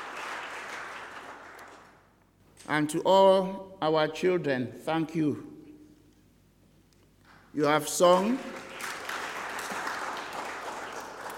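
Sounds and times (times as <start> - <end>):
audience clapping: 0.0 - 2.2, 7.3 - 11.3
speech: 2.7 - 5.5, 7.6 - 8.7.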